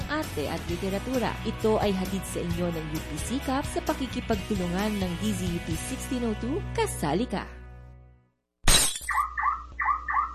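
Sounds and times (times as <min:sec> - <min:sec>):
speech: 0:00.3 - 0:07.6
car alarm sounding in repeated two-tone electronic wails: 0:09.1 - 0:10.3.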